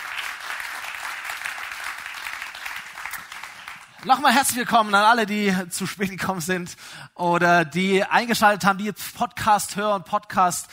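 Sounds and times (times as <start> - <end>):
audience applause: 0.0 - 4.4
speech: 4.0 - 10.7.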